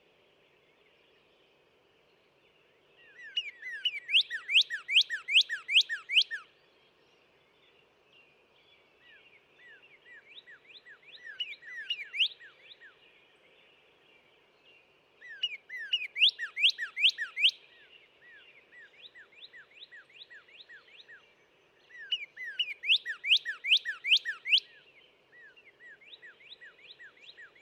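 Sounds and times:
northern cardinal whistled song: 0:03.2 - 0:06.5, 0:10.4 - 0:12.5, 0:15.4 - 0:17.6, 0:22.0 - 0:24.8.

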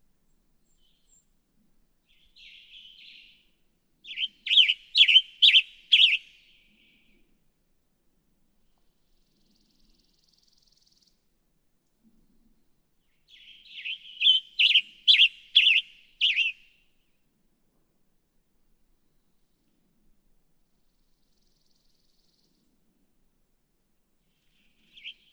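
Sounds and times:
Western Tanager: 0:04.1 - 0:06.3, 0:13.3 - 0:16.7, 0:24.9 - 0:25.3.

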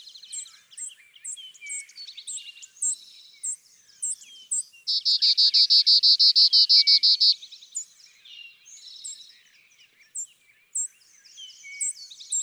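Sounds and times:
Clay-colored Sparrow singing: 0:00.0 - 0:08.0, 0:10.0 - 0:12.4.

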